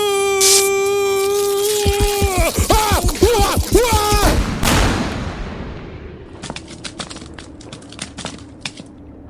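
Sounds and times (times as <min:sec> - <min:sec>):
sharp crackling pops: 0:00.1 - 0:09.0
explosion blast as a character blows up: 0:02.0 - 0:06.6.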